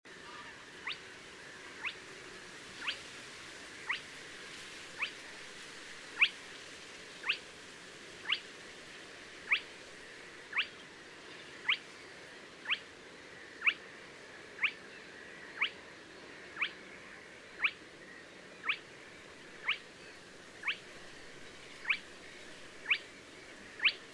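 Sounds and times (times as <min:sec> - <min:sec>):
spotted crake calling: 0:00.8 - 0:01.1, 0:01.8 - 0:02.0, 0:02.8 - 0:03.0, 0:03.8 - 0:04.1, 0:04.9 - 0:05.2, 0:06.2 - 0:06.4, 0:07.2 - 0:07.4, 0:08.2 - 0:08.4, 0:09.4 - 0:09.8, 0:10.5 - 0:10.8, 0:11.6 - 0:11.9, 0:12.6 - 0:13.9, 0:14.5 - 0:15.9, 0:16.5 - 0:18.0, 0:18.6 - 0:24.1.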